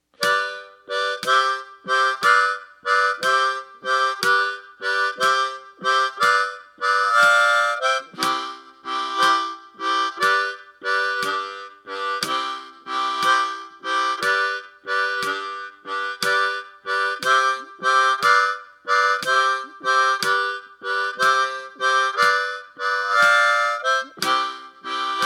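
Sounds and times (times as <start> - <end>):
blues music: 0.0 - 25.2.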